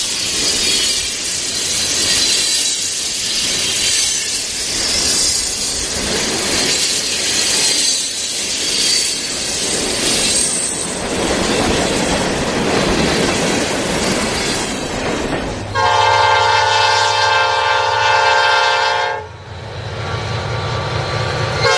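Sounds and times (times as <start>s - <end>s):
train clattering on tracks: 0.0s - 21.7s
train horn: 15.7s - 19.4s, 21.6s - 21.7s.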